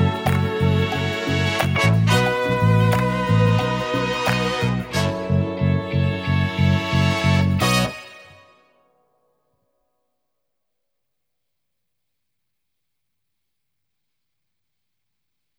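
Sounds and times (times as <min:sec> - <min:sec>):
backing music: 0:00.0 - 0:08.7.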